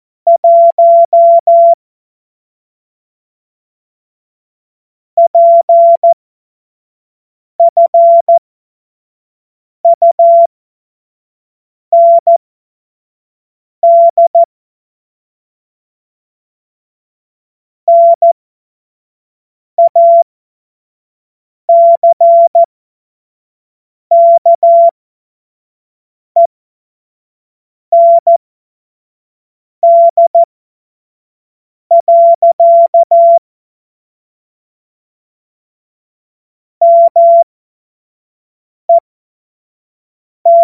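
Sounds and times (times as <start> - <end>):
morse code beeps: 0.3 - 1.8, 5.2 - 6.2, 7.6 - 8.4, 9.9 - 10.5, 12.0 - 12.4, 13.8 - 14.5, 17.9 - 18.4, 19.8 - 20.2, 21.7 - 22.7, 24.1 - 25.0, 27.9 - 28.4, 29.8 - 30.5, 31.9 - 33.4, 36.8 - 37.5, 40.5 - 40.6.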